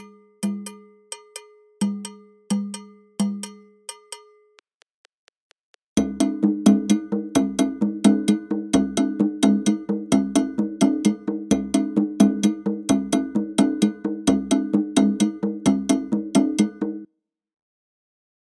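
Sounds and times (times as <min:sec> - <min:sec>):
African dance music at 130 bpm: 0:06.0 - 0:17.0.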